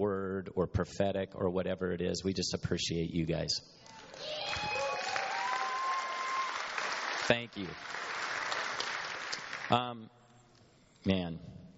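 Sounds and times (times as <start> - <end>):
speech: 0.0 - 4.8, 7.3 - 8.0, 9.7 - 10.2, 11.0 - 11.6
audience applause: 4.0 - 9.8.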